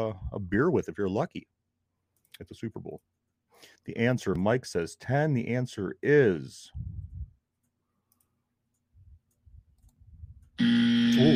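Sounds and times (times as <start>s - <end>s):
speech: 0.0s - 1.6s, 2.4s - 7.0s, 10.6s - 11.3s
game show wrong-answer buzzer in a Super Bowl trivia quiz: 10.6s - 11.3s.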